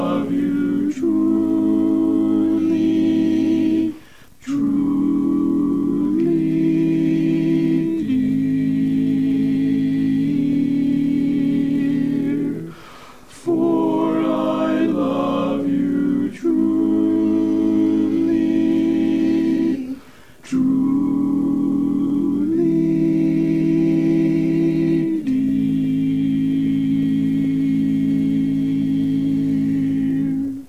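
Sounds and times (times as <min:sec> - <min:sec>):
barbershop quartet tenor singing greetings: 0:00.0 - 0:30.6.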